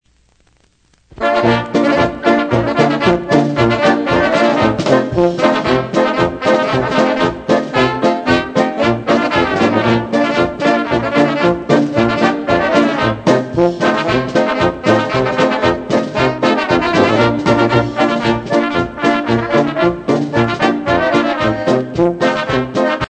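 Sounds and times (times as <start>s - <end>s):
polka music: 1.1s - 23.0s.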